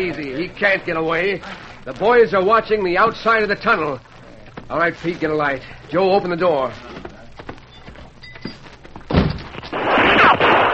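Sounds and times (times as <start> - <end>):
speech: 0.0 - 4.1, 4.7 - 7.0
gunshots fired in a tunnel: 9.7 - 10.7.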